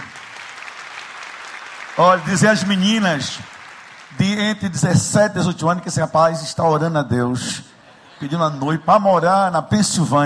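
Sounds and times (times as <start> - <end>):
audience applause: 0.0 - 4.7
speech: 2.0 - 3.5, 4.1 - 10.2
laughter: 7.8 - 9.8.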